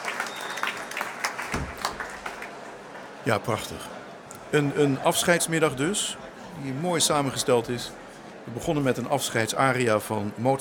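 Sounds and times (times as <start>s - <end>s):
audience applause: 0.0s - 3.9s
speech: 3.2s - 10.6s.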